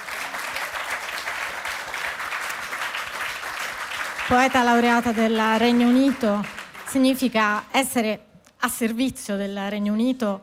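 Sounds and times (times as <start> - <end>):
audience applause: 0.0 - 6.9
speech: 4.3 - 10.4.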